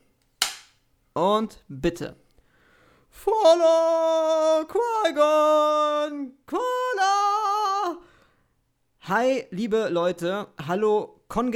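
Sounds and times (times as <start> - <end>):
film clapperboard snapping shut: 0.4 - 0.7
speech: 1.2 - 2.2, 3.1 - 7.1, 9.1 - 11.5.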